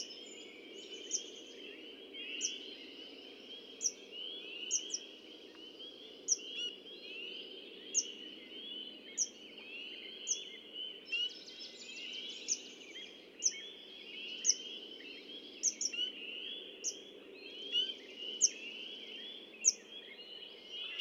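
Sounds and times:
Red-winged Blackbird: 0.0 - 21.0.

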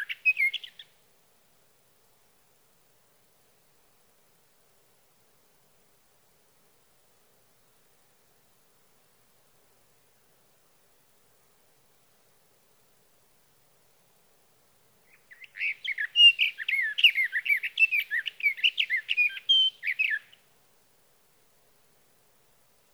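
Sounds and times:
sage thrasher: 15.1 - 20.4.

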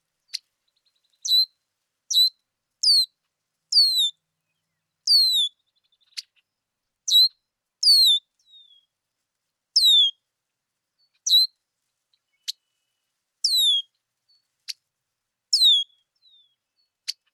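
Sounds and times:
red-winged blackbird calling with whistles and clicks: 1.2 - 1.5, 2.1 - 3.1, 3.8 - 4.1, 5.1 - 6.3, 7.1 - 8.8, 9.8 - 10.1, 11.3 - 11.5, 13.4 - 13.9, 15.5 - 16.4.

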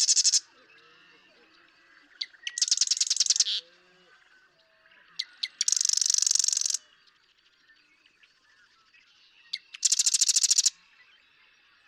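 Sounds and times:
marsh wren song: 0.0 - 0.4, 2.5 - 3.6, 5.4 - 6.8, 9.8 - 10.7.

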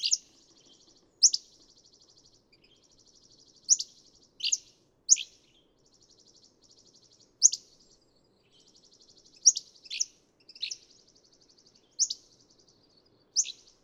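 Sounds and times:
Hammond's flycatcher calling with sharp chips and burry notes: 0.0 - 7.9, 8.5 - 13.8.

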